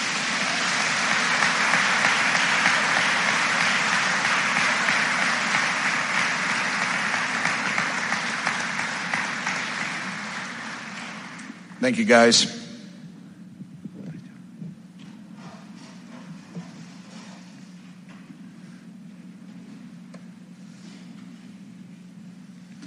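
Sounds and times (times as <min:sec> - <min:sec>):
audience applause at graduation: 0:00.0 - 0:11.7
speech: 0:11.8 - 0:12.6.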